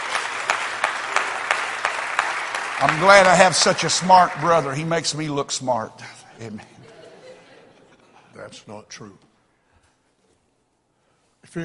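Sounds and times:
audience hand clapping: 0:00.0 - 0:05.3
speech: 0:02.8 - 0:06.8, 0:08.4 - 0:09.3, 0:11.4 - 0:11.6
laughter: 0:06.4 - 0:08.6.

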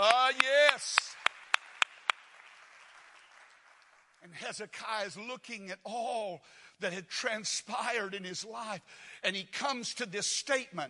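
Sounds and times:
people clapping in praise: 0:00.0 - 0:04.8
speech: 0:04.3 - 0:10.8.

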